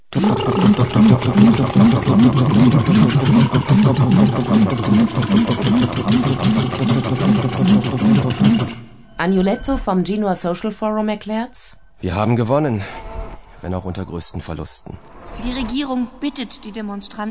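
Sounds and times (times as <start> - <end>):
speech: 0.2 - 17.2
helicopters circling over the city: 1.1 - 8.9.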